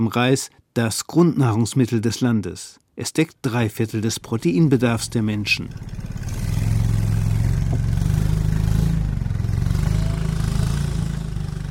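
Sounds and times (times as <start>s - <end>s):
speech: 0.0s - 6.1s
fishing boat engine chugging on a lake: 4.0s - 11.7s.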